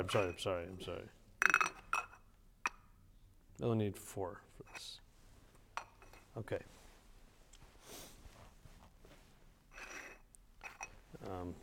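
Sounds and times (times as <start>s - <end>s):
cups being set down and clinking: 0.0s - 0.5s, 1.4s - 3.0s, 5.7s - 6.4s, 9.7s - 11.3s
speech: 0.0s - 1.6s, 3.6s - 5.0s, 6.4s - 6.8s, 11.2s - 11.6s.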